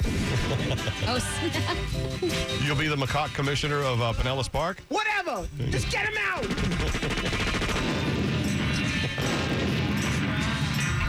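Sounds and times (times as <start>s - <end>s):
explosion sound effect: 0.0s - 0.8s, 6.4s - 11.0s
laughter: 0.1s - 2.8s, 6.4s - 7.8s
speech: 0.5s - 7.5s
rapid crackling pops: 5.4s - 11.0s.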